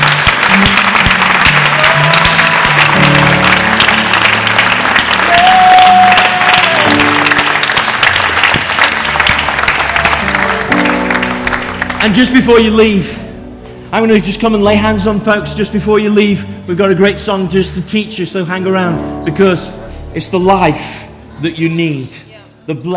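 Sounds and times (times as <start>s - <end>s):
crowd applause: 0.0s - 13.2s
keyboard chords: 0.0s - 22.9s
speech: 12.0s - 13.2s, 13.9s - 22.9s.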